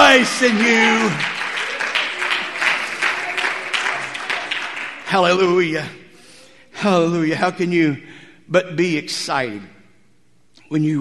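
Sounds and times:
audience clapping hands: 0.0 - 5.6
speech: 0.2 - 1.4, 5.1 - 6.0, 6.8 - 9.7, 10.7 - 10.9.

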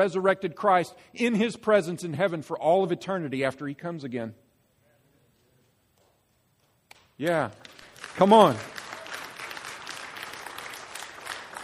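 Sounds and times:
speech: 0.0 - 4.4, 7.2 - 8.8
audience applauding: 7.5 - 11.6.

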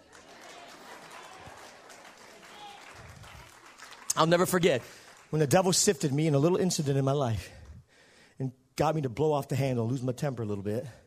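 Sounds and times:
audience clapping hands: 0.0 - 7.4
speech: 4.2 - 7.6, 8.4 - 11.0.

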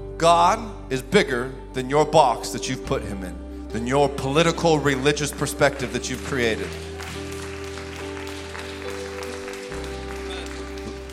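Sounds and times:
speech: 0.2 - 6.9
audience clapping: 4.8 - 11.1.

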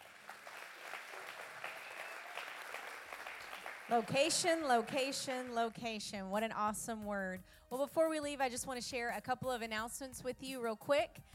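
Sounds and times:
crowd clapping: 0.0 - 5.8
speech: 3.9 - 11.3.

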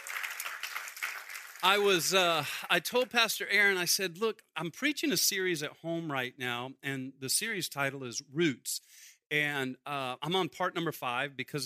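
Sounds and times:
audience hand clap applause: 0.0 - 2.2
speech: 1.6 - 11.6.

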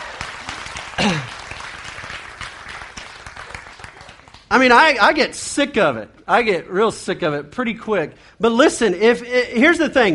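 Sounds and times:
audience clapping for a stand-up comedian: 0.0 - 4.9
speech: 1.0 - 1.3, 4.5 - 10.1.

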